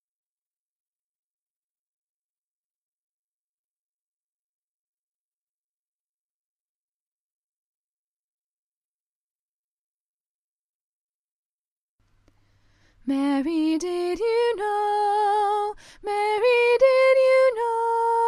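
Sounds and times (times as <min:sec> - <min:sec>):
choir with soprano: 0:13.5 - 0:18.2.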